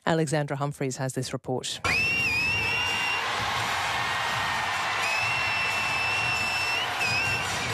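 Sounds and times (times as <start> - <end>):
speech: 0.1 - 2.1
high-pitched whistles: 1.9 - 3.4, 4.9 - 7.7
huge stadium crowd applauding and cheering: 1.9 - 7.7.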